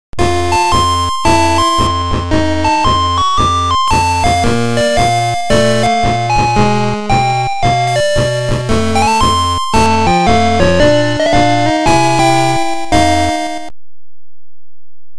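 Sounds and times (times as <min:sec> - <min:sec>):
game over jingle: 0:00.2 - 0:13.7.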